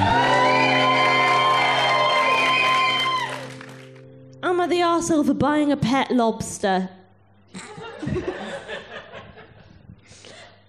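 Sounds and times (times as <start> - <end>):
live festival audience at Assembly Festival in Coventry cheering: 0.0 - 4.0
speech: 4.7 - 8.3
laughter: 7.6 - 9.9.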